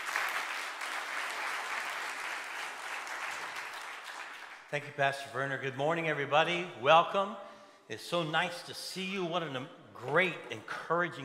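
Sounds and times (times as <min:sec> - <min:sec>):
church congregation applauding a pastor: 0:00.0 - 0:04.7
speech: 0:04.7 - 0:11.2.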